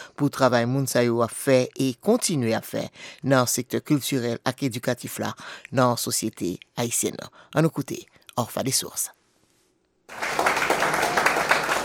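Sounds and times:
speech: 0.2 - 9.2
crowd applauding: 10.1 - 11.8.

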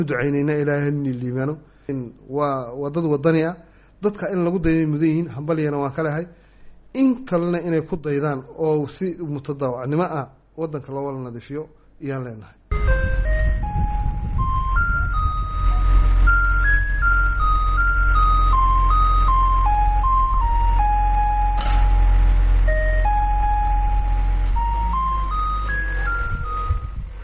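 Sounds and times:
speech: 0.0 - 12.6
electronic jingle played by sanitation trucks in Djibouti city: 12.7 - 27.1
low steady rumble: 12.7 - 27.2.

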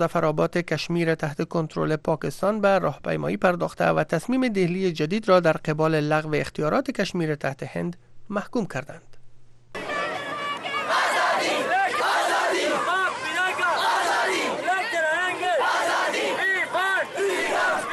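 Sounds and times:
speech: 0.0 - 9.1
large crowd of protesters chanting slogans: 9.8 - 17.9.

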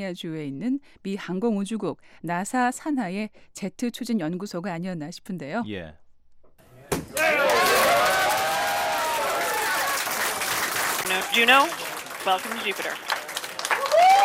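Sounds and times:
speech: 0.0 - 6.0, 11.2 - 13.1
scientists cheering and shouting: 7.1 - 10.2, 13.7 - 14.2
people whooping: 7.1 - 11.8, 13.6 - 14.2
scientists clapping: 7.2 - 14.2.

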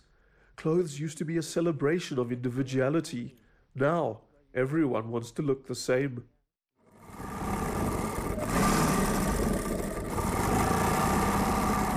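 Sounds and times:
speech: 0.6 - 6.4
old sewing machine running: 6.9 - 11.9.

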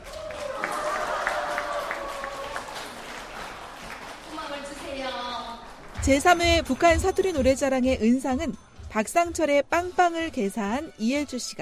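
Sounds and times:
audience applause: 0.0 - 5.9
speech: 6.0 - 11.6.

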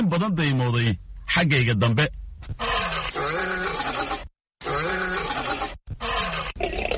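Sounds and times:
speech: 0.1 - 3.6
lion roaring at the lion park in Hargeisa: 2.6 - 6.9.

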